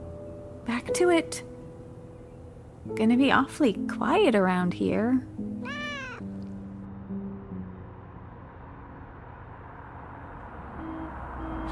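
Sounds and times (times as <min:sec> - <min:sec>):
speech: 0:00.7 - 0:01.5, 0:02.9 - 0:05.5
cat meowing: 0:05.6 - 0:06.4.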